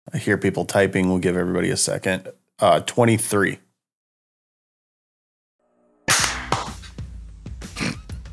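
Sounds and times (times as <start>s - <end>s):
speech: 0.1s - 3.6s
single hand clap to sync recording: 6.1s - 7.0s.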